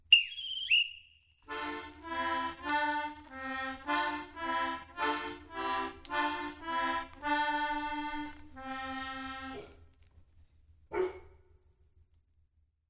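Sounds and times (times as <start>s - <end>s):
carnival accordion: 1.5s - 9.7s.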